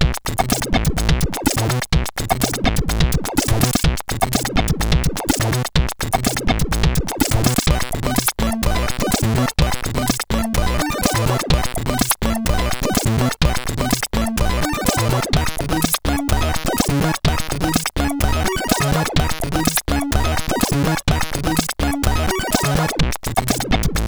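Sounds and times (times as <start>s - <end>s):
SID CSG8580R5 chip music: 0.2s - 24.0s.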